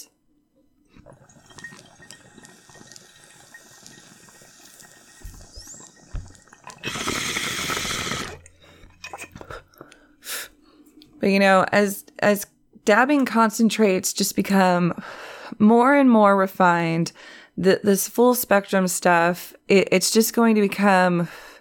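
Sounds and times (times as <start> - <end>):
bong water gurgling during an inhale: 0.8 - 9.4
speech: 11.2 - 21.4.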